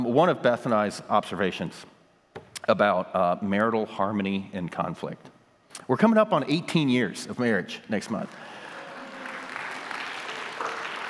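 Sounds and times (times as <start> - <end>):
speech: 0.2 - 1.9, 2.6 - 8.6
audience clapping: 8.1 - 11.0.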